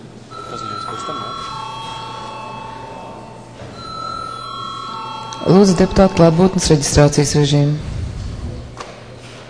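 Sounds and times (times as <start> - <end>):
parliament chamber bell ringing: 0.3 - 7.2
speech: 1.1 - 1.6, 5.4 - 7.9.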